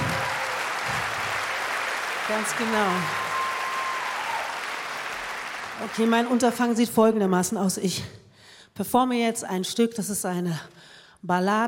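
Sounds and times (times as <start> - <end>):
audience applause for a big band: 0.0 - 6.8
speech: 2.3 - 3.2, 5.8 - 8.2, 8.8 - 11.6.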